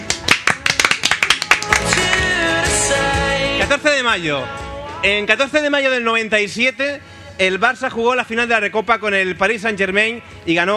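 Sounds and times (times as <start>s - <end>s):
hand claps: 0.0s - 3.4s
sustained tone: 1.6s - 5.6s
speech: 3.7s - 10.7s.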